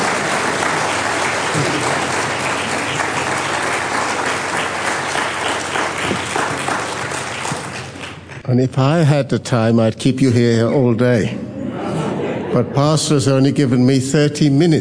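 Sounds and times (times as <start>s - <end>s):
audience applause: 0.0s - 8.4s
speech: 8.5s - 11.4s, 12.5s - 14.8s
laughter: 10.2s - 13.7s.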